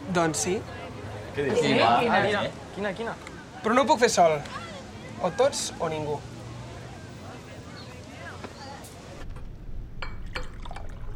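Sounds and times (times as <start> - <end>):
speech: 0.2 - 0.8, 1.4 - 4.6, 5.2 - 6.3
limoncello pouring into a small glass at home: 10.0 - 11.1.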